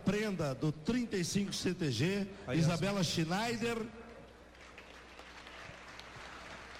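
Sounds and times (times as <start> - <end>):
speech: 0.1 - 4.0
applause: 4.4 - 6.7.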